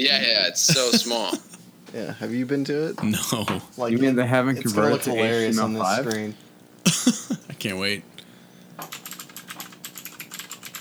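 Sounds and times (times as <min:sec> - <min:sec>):
speech: 0:00.0 - 0:08.2
laughter: 0:00.6 - 0:02.3, 0:03.0 - 0:03.7, 0:06.9 - 0:08.0
computer keyboard typing: 0:08.8 - 0:10.7.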